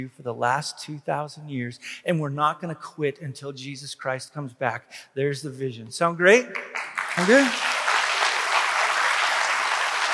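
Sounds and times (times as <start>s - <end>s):
speech: 0.0s - 7.8s
audience clapping: 6.5s - 10.1s.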